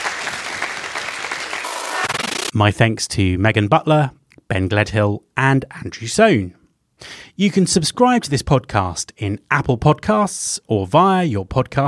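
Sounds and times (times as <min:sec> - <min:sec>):
audience applause: 0:00.0 - 0:02.5
speech: 0:02.5 - 0:11.8.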